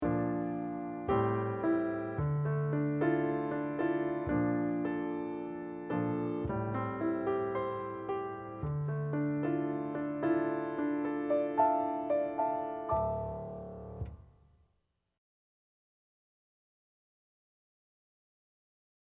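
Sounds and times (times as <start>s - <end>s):
musical accompaniment: 0.3s - 14.2s.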